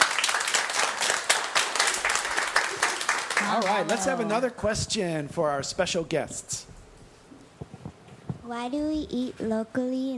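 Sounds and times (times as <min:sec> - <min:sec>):
audience applause: 0:00.0 - 0:04.5
speech: 0:03.5 - 0:06.6, 0:08.5 - 0:10.1.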